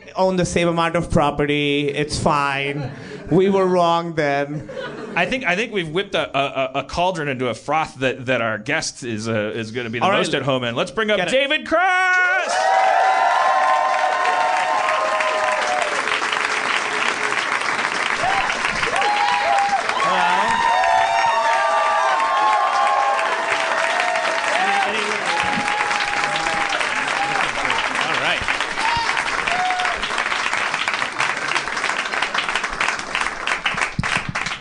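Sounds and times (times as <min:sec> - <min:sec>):
speech: 0:00.2 - 0:13.2
extended audience applause: 0:12.4 - 0:34.6.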